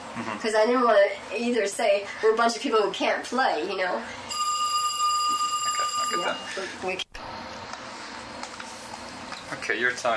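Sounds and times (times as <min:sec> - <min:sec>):
speech: 0:00.2 - 0:04.3, 0:06.2 - 0:07.0, 0:09.6 - 0:10.1
telephone ringing: 0:04.3 - 0:06.5.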